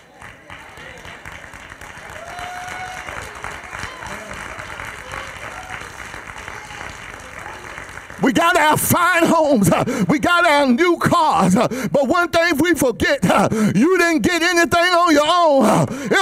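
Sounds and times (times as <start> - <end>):
audience clapping in praise: 0.0 - 10.0
speech: 8.3 - 16.2.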